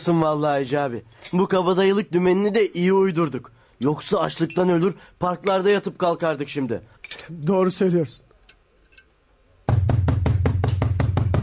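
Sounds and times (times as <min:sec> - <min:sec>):
speech: 0:00.0 - 0:08.3
knocking on a door: 0:09.7 - 0:11.4.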